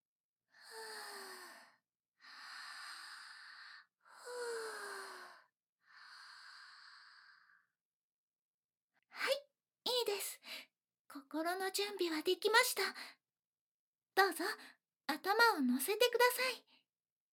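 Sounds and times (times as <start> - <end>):
slow deep breaths taken to calm nerves: 0.6 - 7.7
speech: 11.4 - 13.2, 14.2 - 16.7.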